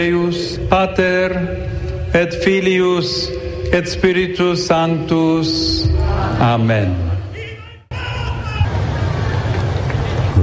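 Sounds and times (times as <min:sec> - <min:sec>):
speech: 0:00.0 - 0:07.1
large crowd of pilgrims applauding: 0:08.2 - 0:10.4.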